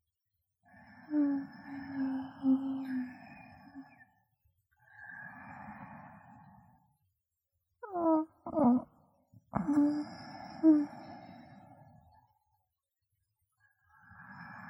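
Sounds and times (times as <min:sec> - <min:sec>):
sleeping breath: 0:00.7 - 0:04.2, 0:04.8 - 0:07.0, 0:09.6 - 0:12.4, 0:13.8 - 0:14.6.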